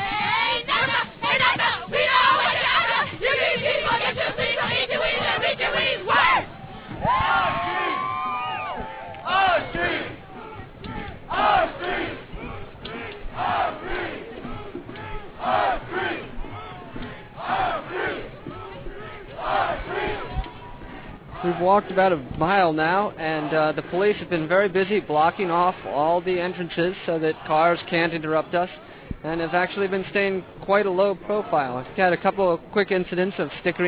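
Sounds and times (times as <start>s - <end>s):
crowd cheerleader-style chanting at a protest march: 0.0s - 8.0s, 8.6s - 22.0s
speech: 21.7s - 33.8s.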